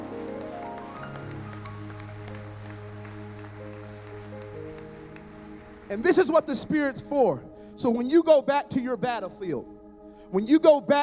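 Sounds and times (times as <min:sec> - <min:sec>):
audience applause: 0:00.0 - 0:06.4
speech: 0:05.9 - 0:09.7, 0:10.3 - 0:11.0.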